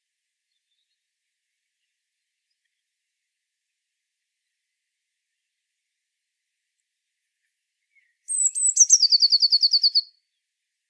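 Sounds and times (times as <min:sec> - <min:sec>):
Eurasian blue tit song: 0:08.3 - 0:10.1.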